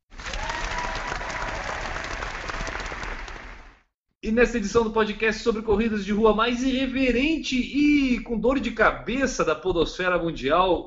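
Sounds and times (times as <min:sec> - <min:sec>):
applause: 0:00.0 - 0:03.9
speech: 0:04.2 - 0:10.8.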